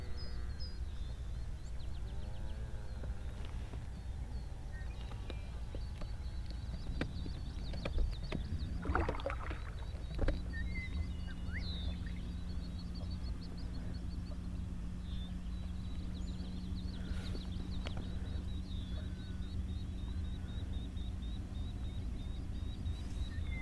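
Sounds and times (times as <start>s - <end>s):
birds chirping: 0.0s - 23.6s.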